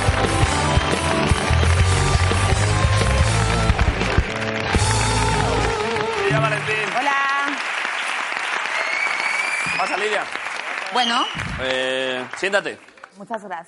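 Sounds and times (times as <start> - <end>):
upbeat music with a brassy melody and low bass: 0.0 - 7.3
audience clapping and cheering: 0.0 - 13.6
speech: 11.0 - 13.6.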